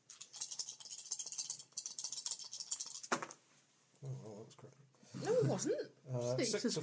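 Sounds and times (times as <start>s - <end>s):
dice rolling: 0.1s - 3.4s
speech: 4.0s - 6.8s.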